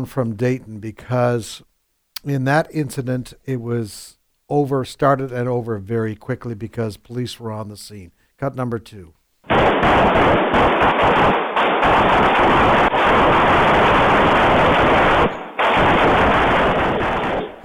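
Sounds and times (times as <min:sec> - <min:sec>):
speech: 0:00.0 - 0:13.9
rapid gunfire from the mass shooting in Dayton, Ohio: 0:09.5 - 0:17.6.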